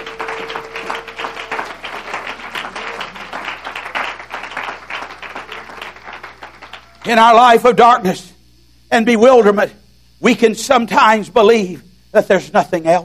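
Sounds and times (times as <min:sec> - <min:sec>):
sustained tone: 0:00.0 - 0:04.3
audience clapping: 0:00.0 - 0:07.2
speech: 0:07.0 - 0:08.3, 0:08.9 - 0:13.0.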